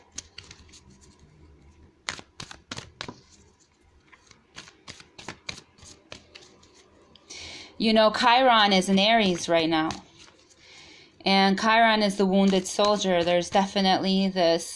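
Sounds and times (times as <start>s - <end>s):
oracle cards shuffling and snapping: 0.0s - 1.3s, 2.0s - 7.0s, 9.2s - 10.6s, 12.1s - 13.8s
speech: 7.8s - 10.1s, 11.2s - 14.7s.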